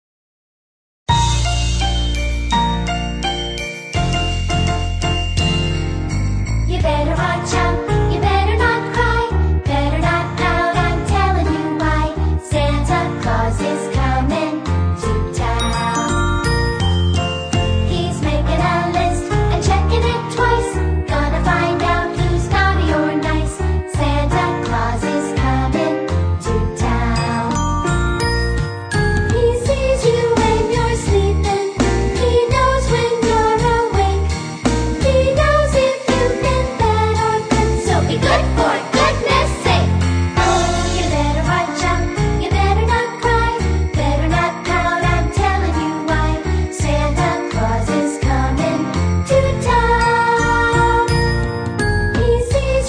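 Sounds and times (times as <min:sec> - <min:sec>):
background music: 0:01.1 - 0:52.8.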